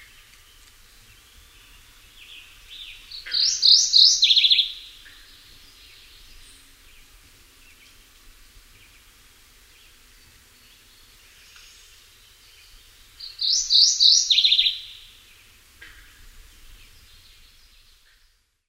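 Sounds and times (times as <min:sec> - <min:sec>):
mourning warbler: 0:01.6 - 0:06.8, 0:10.7 - 0:14.9.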